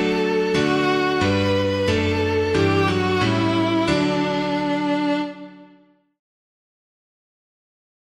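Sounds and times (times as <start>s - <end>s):
piano: 0.0s - 6.1s.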